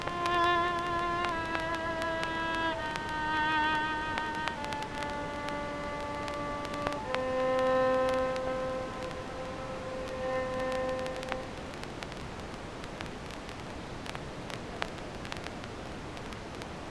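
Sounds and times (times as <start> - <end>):
violin: 0.0 - 11.7.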